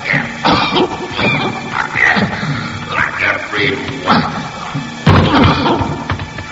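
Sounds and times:
man coughing and choking from gas: 0:00.2 - 0:02.8, 0:03.6 - 0:06.0.

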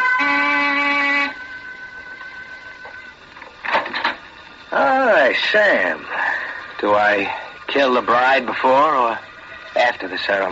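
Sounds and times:
door buzzer: 0:00.0 - 0:03.2
faint hum: 0:00.0 - 0:10.5
speech: 0:05.3 - 0:06.1, 0:06.8 - 0:10.5.

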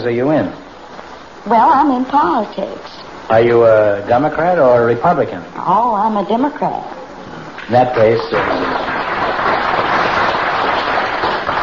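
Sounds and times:
speech: 0:00.0 - 0:00.6, 0:01.4 - 0:07.0, 0:07.7 - 0:08.9
audience applause: 0:07.9 - 0:11.6.

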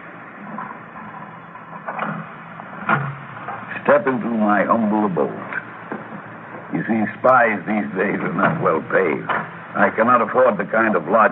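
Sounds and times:
hiss: 0:00.0 - 0:11.3
door opening with rattling clunks: 0:01.7 - 0:03.7, 0:08.4 - 0:09.6
speech: 0:04.0 - 0:05.5, 0:06.7 - 0:11.3.

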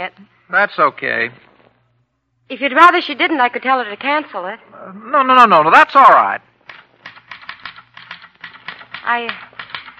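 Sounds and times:
speech: 0:00.0 - 0:01.5, 0:02.5 - 0:06.5, 0:09.0 - 0:09.4
typewriter keys clacking while writing a weekly editorial: 0:06.6 - 0:09.9.

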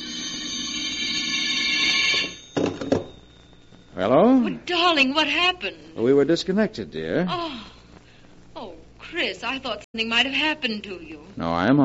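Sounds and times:
telephone ringing: 0:00.0 - 0:06.2
speech: 0:04.0 - 0:07.7, 0:09.1 - 0:11.8.

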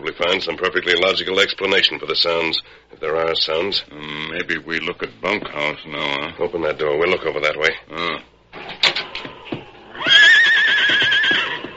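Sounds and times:
speech: 0:00.0 - 0:08.6
horse neighing: 0:09.9 - 0:11.7.

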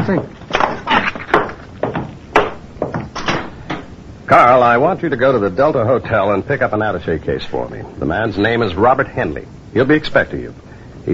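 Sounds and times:
wooden door being shut: 0:00.0 - 0:03.9
speech: 0:00.1 - 0:00.4, 0:04.3 - 0:11.1.

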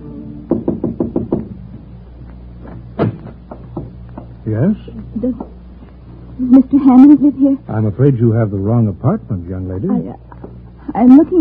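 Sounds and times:
knocking on a door: 0:00.5 - 0:01.9, 0:03.0 - 0:04.4
speech: 0:04.5 - 0:05.5, 0:06.4 - 0:10.3, 0:10.9 - 0:11.3.

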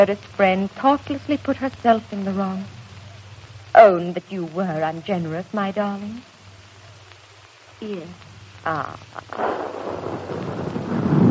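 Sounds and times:
speech: 0:00.0 - 0:02.8, 0:03.8 - 0:06.3, 0:07.8 - 0:10.4
distant cannon fire: 0:09.3 - 0:11.3.

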